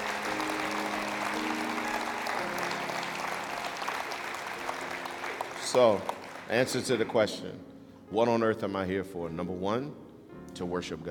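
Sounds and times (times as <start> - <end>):
congregation hand clap for the Lord: 0.0 - 7.4
speech: 5.7 - 10.0, 10.6 - 11.0.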